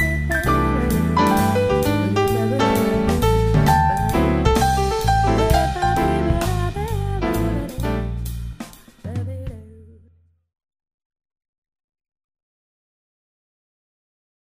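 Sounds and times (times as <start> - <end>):
jazz music: 0.0 - 9.4.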